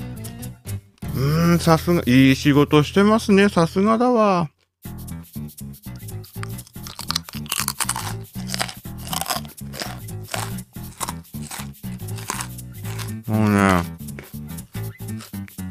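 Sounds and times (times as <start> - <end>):
speech: 1.2 - 5.0
crunchy chewing of a snack: 6.3 - 14.4, 15.1 - 15.6.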